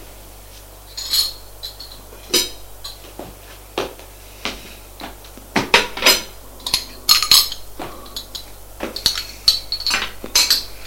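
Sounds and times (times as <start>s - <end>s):
breakfast tray of china dishes and metal cutlery clinking: 0.9s - 3.1s, 5.7s - 10.8s.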